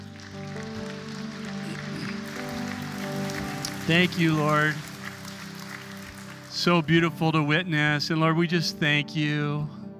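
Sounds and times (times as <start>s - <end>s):
applause: 0.0s - 7.7s
speech: 3.9s - 4.9s, 6.6s - 9.8s.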